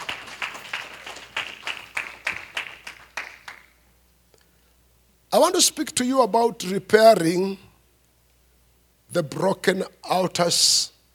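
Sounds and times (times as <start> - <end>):
audience clapping hands: 0.0 - 3.8
speech: 5.4 - 7.7, 9.2 - 11.0.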